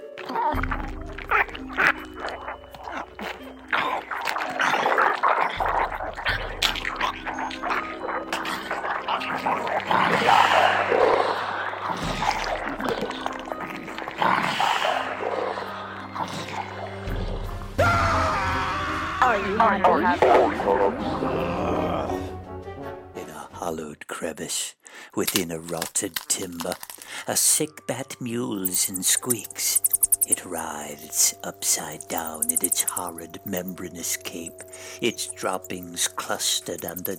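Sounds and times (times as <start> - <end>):
zombies gargling and slurping eating a brain: 0.0 - 17.6, 28.5 - 37.1
zombie guttural growls: 0.2 - 22.4, 28.6 - 37.1
speech: 0.4 - 1.9, 25.7 - 37.1.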